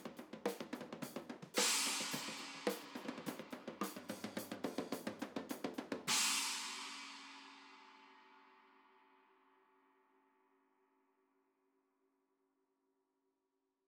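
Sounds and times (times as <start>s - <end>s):
cymbals: 0.0s - 8.6s.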